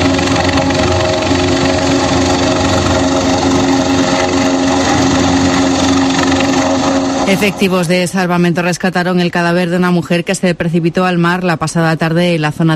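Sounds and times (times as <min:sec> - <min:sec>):
rescue helicopter engine roar: 0:00.0 - 0:08.9
speech: 0:07.3 - 0:12.7.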